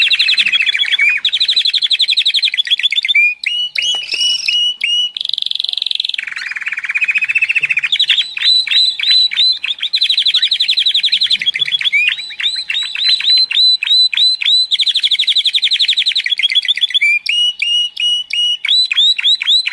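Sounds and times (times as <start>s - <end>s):
canary singing trills and rolls: 0.0s - 19.7s.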